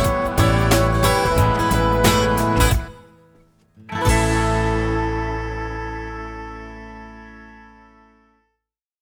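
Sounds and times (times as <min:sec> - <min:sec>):
acoustic hip hop music: 0:00.0 - 0:07.2.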